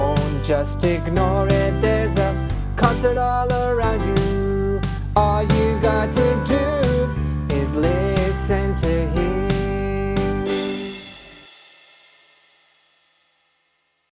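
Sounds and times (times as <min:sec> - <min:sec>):
person singing: 0:00.0 - 0:11.3.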